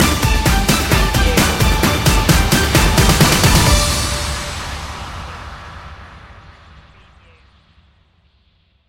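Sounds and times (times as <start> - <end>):
sports hero stinger: 0.0 - 5.6.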